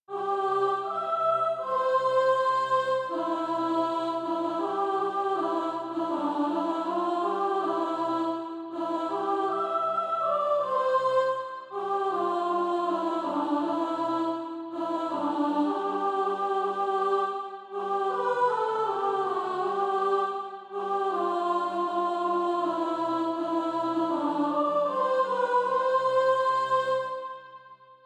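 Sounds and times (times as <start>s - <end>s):
soprano singing practice music: 0.1s - 27.6s.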